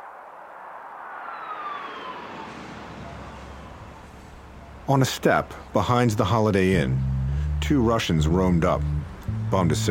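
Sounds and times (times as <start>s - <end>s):
speech: 4.9s - 9.8s
car radio playing: 7.5s - 9.8s.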